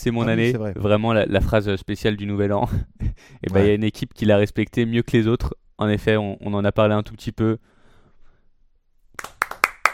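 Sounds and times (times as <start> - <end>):
speech: 0.0 - 7.7
sharp hand claps during a trophy presentation: 9.1 - 9.9.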